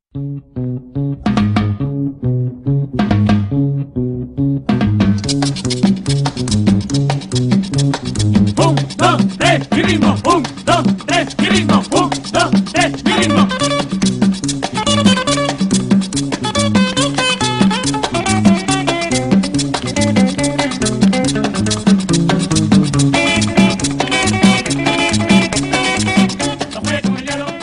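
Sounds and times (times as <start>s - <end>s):
Mexican music: 0.1s - 27.6s.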